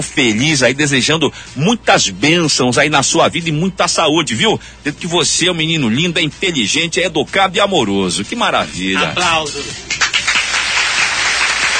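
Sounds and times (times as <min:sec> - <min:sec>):
speech: 0:00.0 - 0:10.0
applause: 0:09.9 - 0:11.7.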